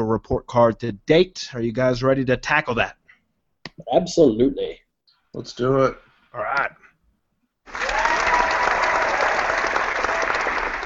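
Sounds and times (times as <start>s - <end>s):
speech: 0.0s - 3.0s, 3.8s - 6.8s
round of applause: 7.7s - 10.8s.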